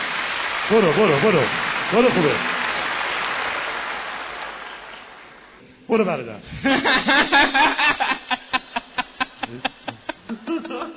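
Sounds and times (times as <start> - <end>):
audience applause: 0.0 - 5.6
speech: 0.7 - 2.6, 5.9 - 7.6, 9.5 - 9.7
laughter: 6.6 - 10.9.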